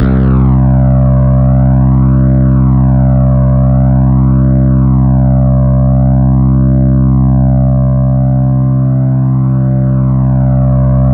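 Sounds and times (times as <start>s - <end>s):
synth line: 0.0s - 11.1s.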